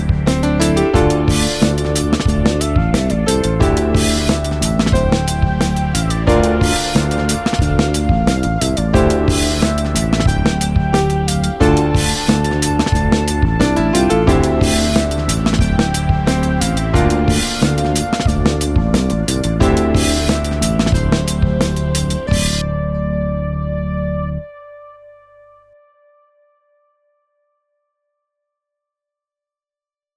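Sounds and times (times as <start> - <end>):
open string double bass groove backing music: 0.0 - 23.9.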